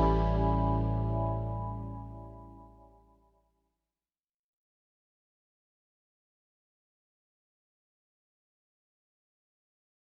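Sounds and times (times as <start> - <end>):
straight eighths blues music: 0.0 - 3.0.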